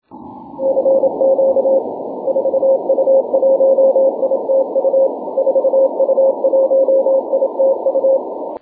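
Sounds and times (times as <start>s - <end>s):
6m continuous wave radio tone: 0.0s - 8.5s.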